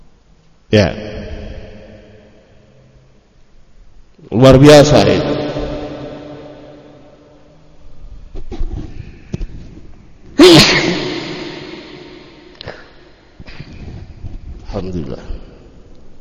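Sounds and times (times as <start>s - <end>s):
speech: 0.7s - 1.1s, 4.4s - 5.3s
person sneezing: 10.4s - 13.1s.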